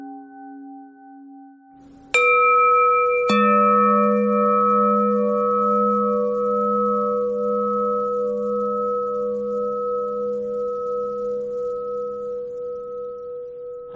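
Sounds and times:
bells ringing: 1.9s - 12.9s.

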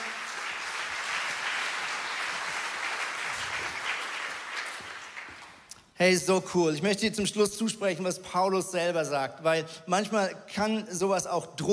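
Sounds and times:
audience applause: 0.0s - 5.7s
speech: 6.0s - 11.7s.

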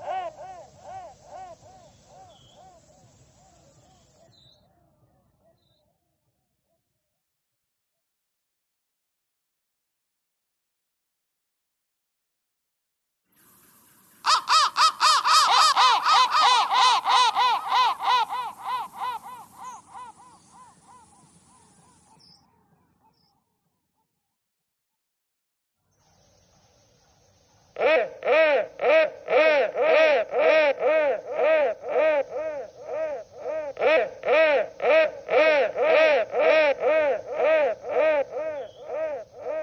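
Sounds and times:
crow cawing: 0.0s - 2.8s, 14.2s - 21.1s, 27.8s - 39.6s.

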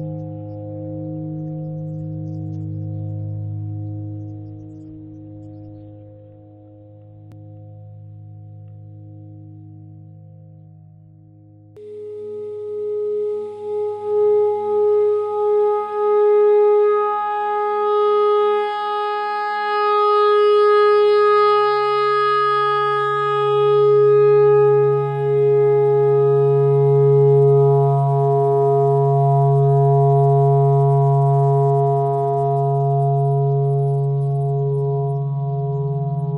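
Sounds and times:
clarinet playing pentatonic notes: 11.8s - 36.3s.

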